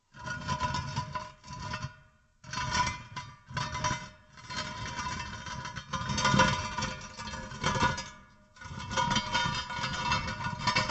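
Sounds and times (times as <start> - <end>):
large metal scrape on stone: 0.1 - 10.8.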